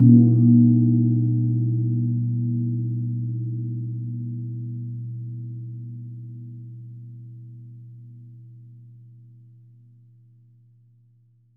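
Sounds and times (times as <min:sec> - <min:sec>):
gong struck at A#2: 0:00.0 - 0:07.4.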